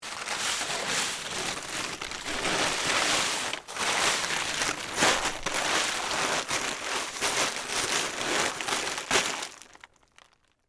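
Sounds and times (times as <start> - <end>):
plastic tarp folding: 0.0 - 10.5.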